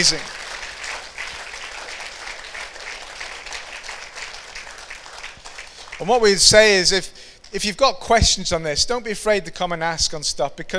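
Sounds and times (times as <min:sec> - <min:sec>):
speech: 0:00.0 - 0:00.4, 0:06.0 - 0:10.7
audience applause: 0:00.0 - 0:06.4.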